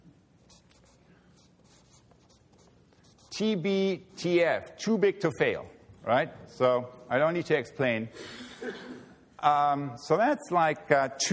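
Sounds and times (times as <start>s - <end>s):
scratchy writing strokes of a speaker writing out an abbreviation: 0.4s - 4.3s
speech: 3.4s - 11.3s.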